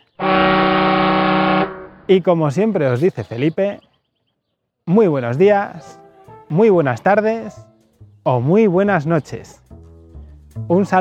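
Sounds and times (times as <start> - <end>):
horn honk: 0.1 - 2.1
speech: 2.1 - 3.9, 4.9 - 9.6, 10.6 - 10.9.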